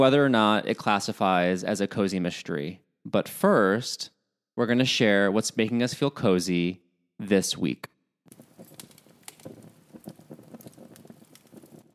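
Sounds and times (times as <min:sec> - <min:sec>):
speech: 0:00.0 - 0:07.9
crackling fireplace: 0:08.3 - 0:11.9.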